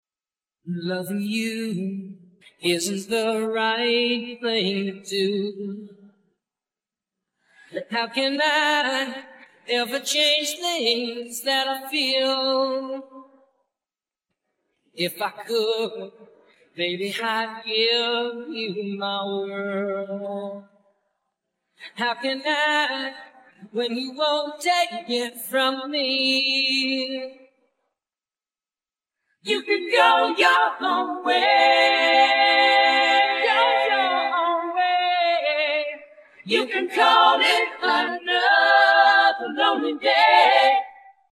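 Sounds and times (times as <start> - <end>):
vocals: 0.6 - 6.3, 7.5 - 13.5, 15.0 - 20.9, 21.8 - 27.6, 29.4 - 41.3.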